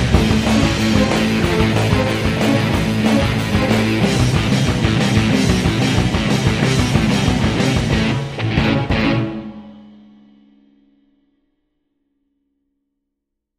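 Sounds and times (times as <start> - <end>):
nu skool metal music: 0.0 - 10.8.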